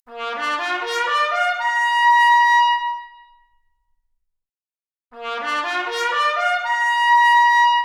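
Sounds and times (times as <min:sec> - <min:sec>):
trumpet arpeggio: 0:00.2 - 0:01.9, 0:05.2 - 0:07.7.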